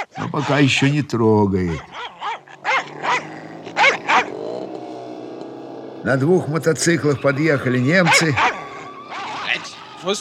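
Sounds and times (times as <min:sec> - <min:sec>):
dog snarling barks: 0:00.0 - 0:01.0, 0:01.6 - 0:06.6, 0:07.9 - 0:09.6
dog growling: 0:00.0 - 0:10.1
speech: 0:00.4 - 0:02.2, 0:06.0 - 0:08.6, 0:10.0 - 0:10.2.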